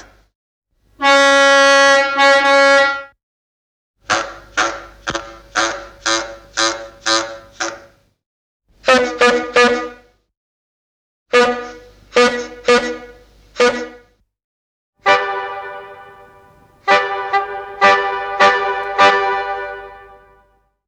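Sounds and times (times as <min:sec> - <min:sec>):
old car horns: 0:01.0 - 0:03.1, 0:04.1 - 0:07.7, 0:11.3 - 0:13.9, 0:15.0 - 0:20.6.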